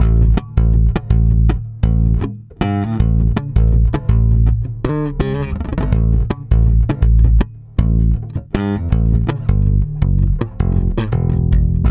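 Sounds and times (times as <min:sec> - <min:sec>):
strummed bass: 0:00.0 - 0:11.8.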